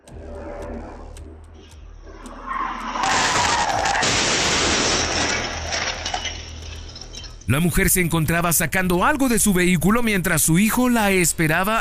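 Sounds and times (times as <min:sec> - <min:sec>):
out-of-control van skidding: 0:00.0 - 0:08.8
van smashing into a car and chain-link fence: 0:03.0 - 0:07.2
glass clinking: 0:05.0 - 0:07.8
speech: 0:07.5 - 0:11.7.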